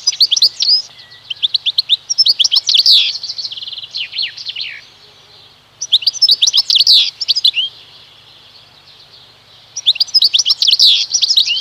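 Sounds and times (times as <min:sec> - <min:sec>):
European goldfinch song: 0:00.0 - 0:11.5.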